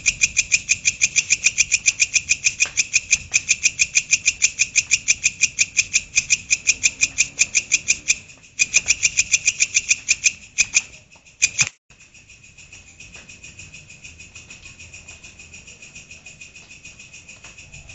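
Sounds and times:
grasshopper stridulating: 0.0 - 17.9.

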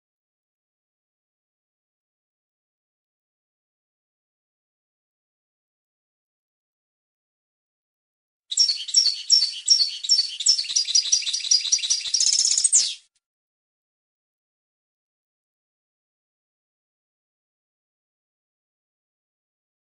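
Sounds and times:
European goldfinch song of tinkling twitter: 8.5 - 13.0.

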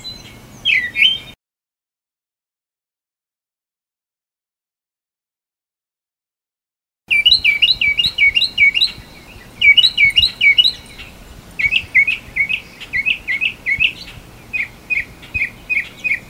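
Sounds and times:
northern mockingbird singing high bright phrases: 0.0 - 1.4, 7.1 - 16.2.

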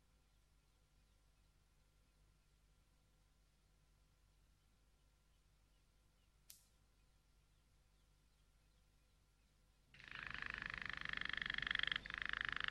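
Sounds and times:
Waterslager canary song: 9.9 - 12.6.

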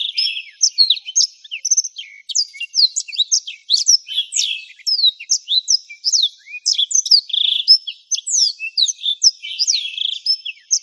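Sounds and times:
black-throated canary twittering song: 0.0 - 10.8.

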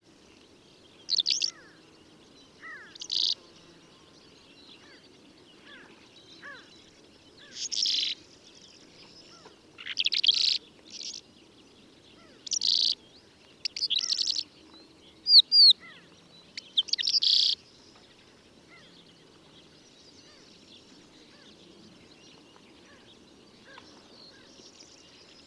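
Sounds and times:
calandra lark chirping: 1.1 - 1.7, 2.6 - 3.4, 7.4 - 8.2, 9.3 - 11.2, 12.2 - 13.0, 13.6 - 14.5, 15.2 - 17.7.

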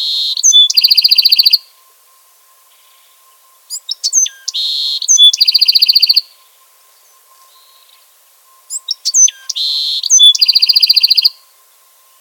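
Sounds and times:
Bewick's wren song: 0.0 - 1.7, 2.7 - 12.1.

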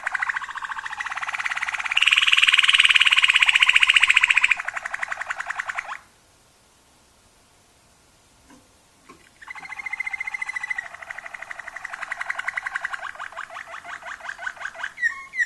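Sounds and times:
Waterslager canary singing bubbling dipping notes: 0.0 - 6.0, 9.2 - 15.4.

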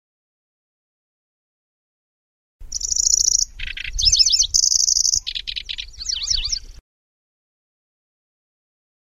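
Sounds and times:
lanceolated warbler singing: 2.6 - 6.8.

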